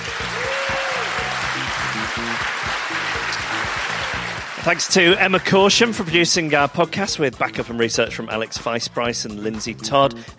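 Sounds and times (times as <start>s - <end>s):
audience round of applause: 0.0s - 6.4s
low repeating tonal music: 0.0s - 10.3s
speech: 4.6s - 10.3s.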